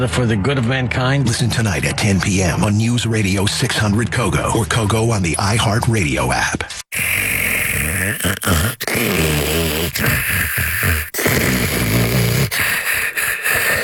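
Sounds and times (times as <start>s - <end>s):
speech: 0.0s - 6.8s, 8.1s - 11.8s
loud snoring: 6.9s - 13.8s.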